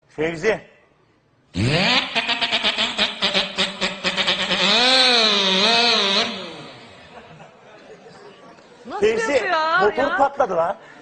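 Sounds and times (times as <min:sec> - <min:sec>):
man imitating car and engine sounds: 0:01.6 - 0:07.3
laughter: 0:07.0 - 0:11.0.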